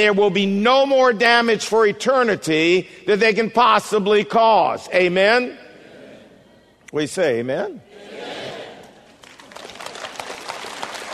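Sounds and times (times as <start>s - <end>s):
speech: 0.0s - 5.6s, 6.9s - 8.1s
audience clapping: 9.0s - 11.1s.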